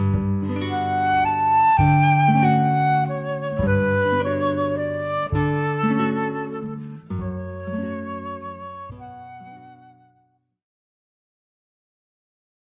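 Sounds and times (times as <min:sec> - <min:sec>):
bass: 0:00.0 - 0:09.2
flute: 0:00.0 - 0:10.4
guitar: 0:00.0 - 0:10.5.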